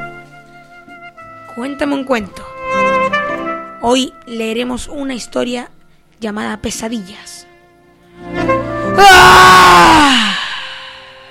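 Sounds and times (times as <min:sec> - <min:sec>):
speech: 0:01.6 - 0:02.5, 0:03.8 - 0:07.5, 0:09.0 - 0:10.3
scream of pain: 0:08.9 - 0:11.2.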